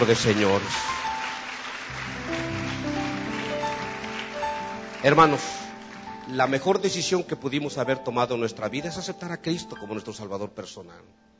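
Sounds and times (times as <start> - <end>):
speech: 0.0 - 1.0, 5.0 - 5.6, 6.3 - 11.3
applause: 0.0 - 7.2.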